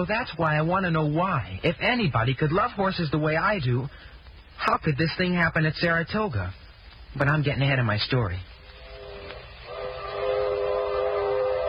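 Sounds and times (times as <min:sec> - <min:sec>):
speech: 0:00.0 - 0:08.5
freight train rolling along the rails: 0:08.8 - 0:11.6
sustained horn-like metallic tone: 0:08.8 - 0:11.6.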